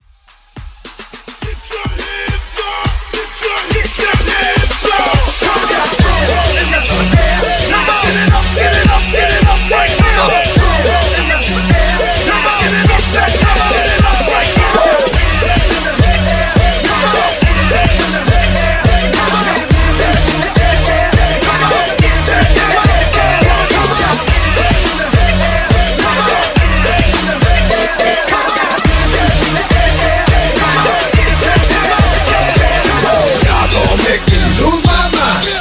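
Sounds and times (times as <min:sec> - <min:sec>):
dirty party breakbeat music at 105 BPM: 0:00.0 - 0:35.6.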